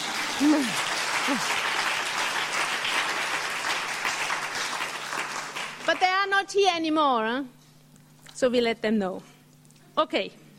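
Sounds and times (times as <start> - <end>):
group applause: 0.0 - 6.3
speech: 0.4 - 1.6, 6.2 - 7.6, 8.4 - 9.3, 10.0 - 10.4.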